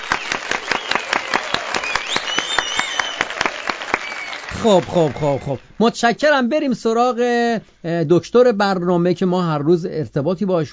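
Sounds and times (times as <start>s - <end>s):
audience applause at a radio show: 0.0s - 5.8s
speech: 4.6s - 10.7s.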